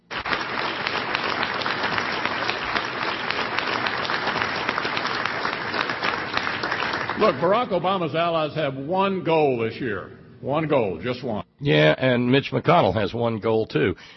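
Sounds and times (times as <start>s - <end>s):
applause sound effect from clap button: 0.0s - 8.0s
speech: 7.2s - 14.1s.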